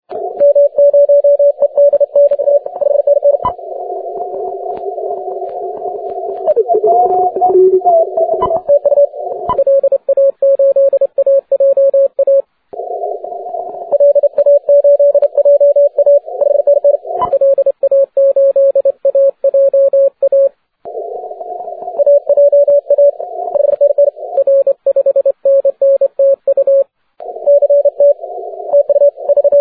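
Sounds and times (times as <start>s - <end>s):
CW Morse code beeps: 0.4s - 3.6s, 6.4s - 12.4s, 13.9s - 20.5s, 22.0s - 29.5s.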